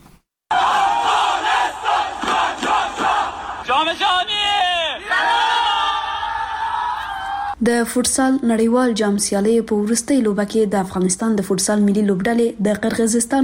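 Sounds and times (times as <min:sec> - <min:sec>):
crowd cheering and shouting to welcome Afghanistan's national futsal team: 0:00.5 - 0:07.6
speech: 0:07.6 - 0:13.4.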